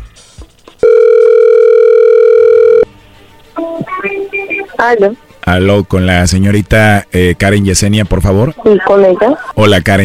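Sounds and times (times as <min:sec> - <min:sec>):
phone call to Colombia being dialed: 0:00.8 - 0:02.9
speech: 0:04.8 - 0:10.0.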